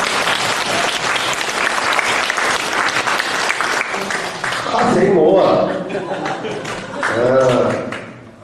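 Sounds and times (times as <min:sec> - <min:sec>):
audience applause: 0:00.0 - 0:05.0, 0:06.1 - 0:08.1
laughter: 0:04.0 - 0:07.9.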